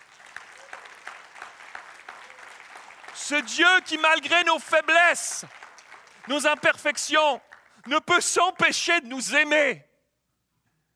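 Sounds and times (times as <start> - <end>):
audience applauding: 0.0 - 8.7
speech: 3.2 - 5.6, 6.3 - 9.9.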